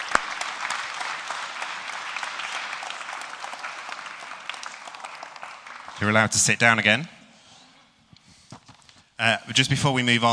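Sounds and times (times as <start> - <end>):
audience applause: 0.0 - 6.5
speech: 6.0 - 7.2, 9.2 - 10.3.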